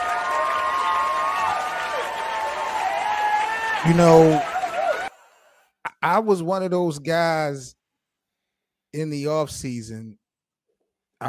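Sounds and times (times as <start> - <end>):
cheers and whistles: 0.0 - 5.1
crowd clapping: 0.0 - 5.1
speech: 3.8 - 4.5, 6.0 - 7.8, 8.9 - 10.2.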